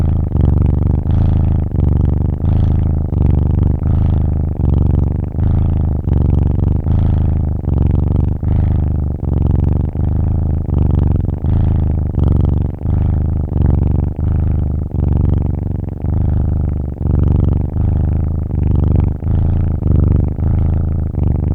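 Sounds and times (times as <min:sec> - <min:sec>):
kitten purring: 0:00.0 - 0:21.5.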